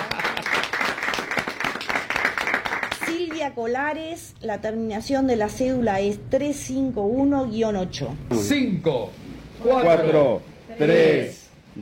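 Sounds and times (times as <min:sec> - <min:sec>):
crowd applauding: 0:00.0 - 0:03.4
speech: 0:03.4 - 0:11.8.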